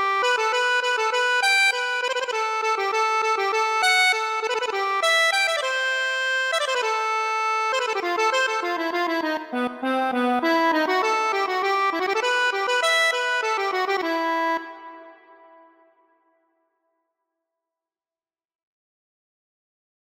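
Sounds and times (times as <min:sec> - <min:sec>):
accordion: 0:00.0 - 0:15.8.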